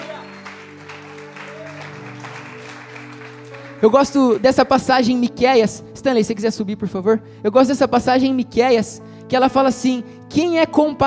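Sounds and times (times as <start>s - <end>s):
audience applause: 0.0s - 4.8s
speech: 3.8s - 11.0s.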